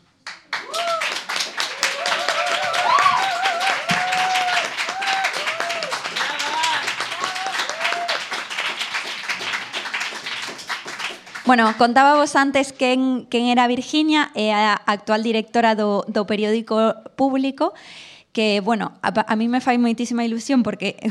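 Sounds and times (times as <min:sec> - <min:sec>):
audience applause: 0:00.2 - 0:11.9
voices calling out and cheering: 0:00.6 - 0:08.4
laughter: 0:01.9 - 0:08.0
speech: 0:11.5 - 0:21.0.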